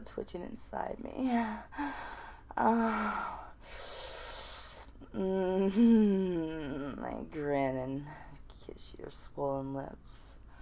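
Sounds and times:
speech: 0:00.0 - 0:04.0, 0:05.2 - 0:10.2
heavy breathing: 0:01.6 - 0:04.9.

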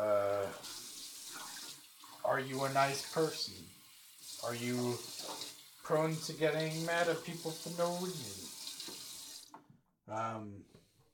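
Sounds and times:
running water from a tap: 0:00.0 - 0:09.6
speech: 0:02.4 - 0:03.8, 0:04.4 - 0:05.3, 0:05.9 - 0:08.5, 0:10.1 - 0:10.8.

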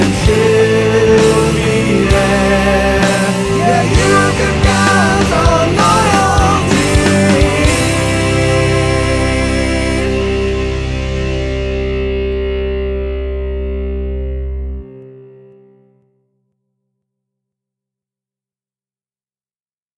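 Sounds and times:
metal music: 0:00.0 - 0:15.4.

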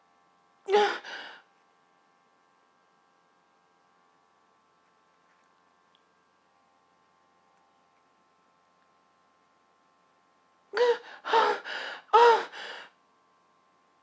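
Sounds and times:
person moaning: 0:00.7 - 0:01.4, 0:10.8 - 0:12.8.

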